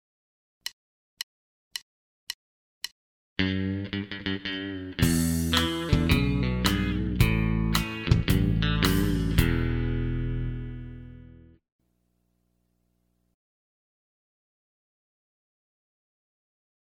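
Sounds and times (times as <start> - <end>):
country rock music: 3.4 - 11.6.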